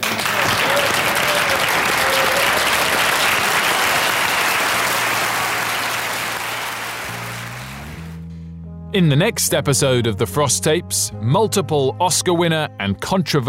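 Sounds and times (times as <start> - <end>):
theatre audience applause: 0.0 - 8.1
speech: 9.0 - 13.4.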